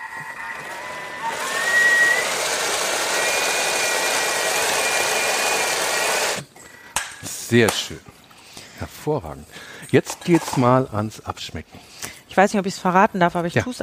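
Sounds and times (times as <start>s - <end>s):
blender mixing chickpea puree: 0.0s - 6.5s
speech: 7.5s - 8.1s, 8.8s - 13.8s.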